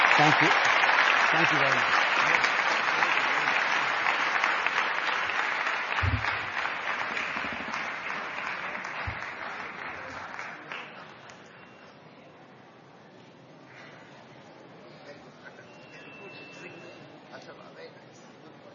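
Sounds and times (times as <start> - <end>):
round of applause: 0.0 - 11.9
speech: 0.2 - 0.7, 1.3 - 2.0.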